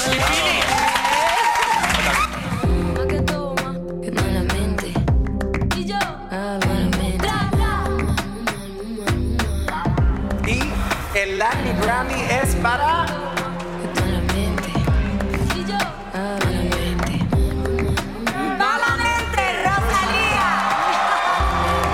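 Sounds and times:
audience applause: 0.0 - 2.7, 19.6 - 21.9
music with a voice and sharp rhythmic hits: 0.0 - 21.9.

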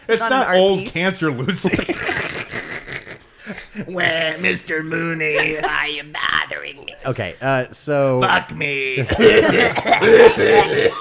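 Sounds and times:
speech: 0.1 - 2.2, 3.8 - 11.0
laughter: 1.6 - 4.4, 5.0 - 6.1, 9.0 - 11.0
person coughing: 9.1 - 11.0.

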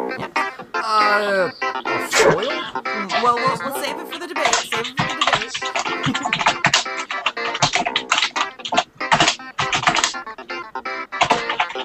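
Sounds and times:
speech: 0.9 - 5.0
loud typing on a computer keyboard: 3.0 - 10.4, 11.2 - 11.8.

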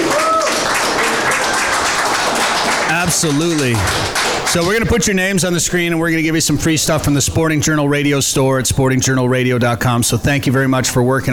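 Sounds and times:
round of applause from a group: 0.0 - 5.2
speech: 3.1 - 11.3.

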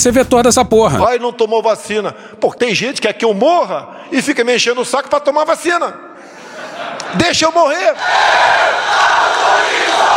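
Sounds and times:
speech: 0.0 - 6.3, 7.1 - 10.0
large audience laughing: 6.3 - 7.4.

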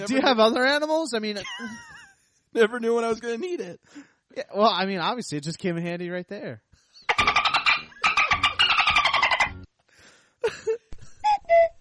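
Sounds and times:
speech: 0.0 - 1.9, 2.5 - 6.7, 10.4 - 10.8
cuckoo clock: 7.1 - 9.6, 11.2 - 11.7.

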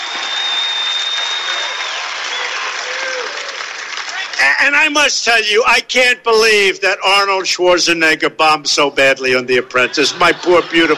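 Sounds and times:
sustained whistles: 0.0 - 2.6
large crowd cheering and applauding: 0.0 - 4.9, 10.0 - 10.9
speech: 4.6 - 10.9
laughter: 9.6 - 10.9.

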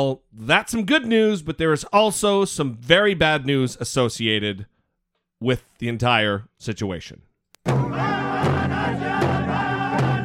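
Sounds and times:
speech: 0.0 - 4.7, 5.4 - 8.6
slow steady drumbeats: 7.6 - 10.2
loud crowd cheering and whooping: 7.7 - 10.2.

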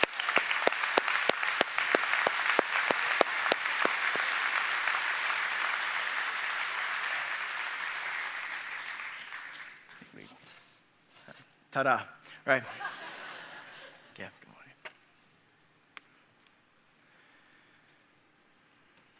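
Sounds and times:
church congregation applauding to welcome a guest: 0.0 - 10.1
speech: 11.8 - 12.9
laughter: 12.6 - 14.2.

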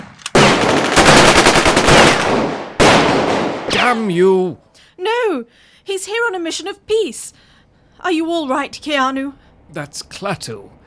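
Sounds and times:
rapid automatic gunfire aimed at a man: 0.0 - 3.7
speech: 3.9 - 10.8.

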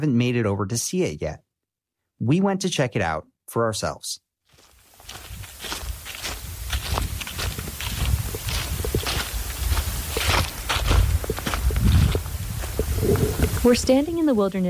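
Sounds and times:
speech: 0.0 - 1.4, 2.2 - 4.2, 13.6 - 14.6
footsteps crunching dry leaves on a gravel path: 4.5 - 14.6.

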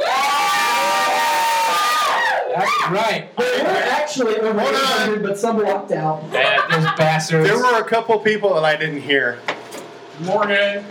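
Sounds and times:
audience of several hundred guests cheering at a live show in a comic shop: 0.0 - 3.1
speech: 2.9 - 9.5, 10.2 - 10.8
laughter: 6.3 - 7.9.

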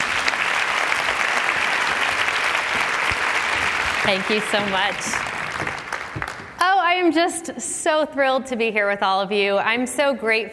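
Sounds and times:
audience clapping for a speaker's introduction: 0.0 - 6.7
speech: 4.0 - 5.3, 6.9 - 10.5.

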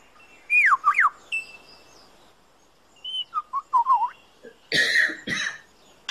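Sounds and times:
bird singing swooping whistled notes and chirps: 0.2 - 1.8, 3.0 - 4.3.

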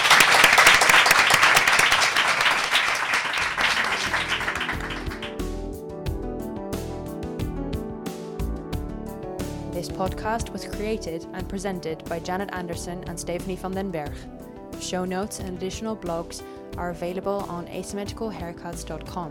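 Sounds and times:
audience applause: 0.0 - 5.4
speech: 10.0 - 19.2.

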